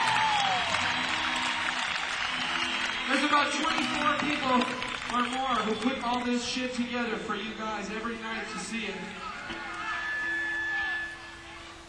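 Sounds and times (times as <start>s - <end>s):
concert crowd applauding the road crew: 0.0s - 7.1s, 9.2s - 10.6s
speech: 3.3s - 9.7s.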